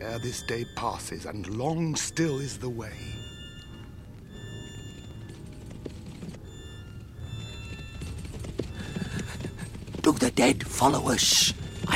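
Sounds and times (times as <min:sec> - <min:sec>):
speech: 0:00.1 - 0:03.2, 0:10.2 - 0:11.7
hooves clip-clopping as horses are ridden: 0:03.7 - 0:11.9.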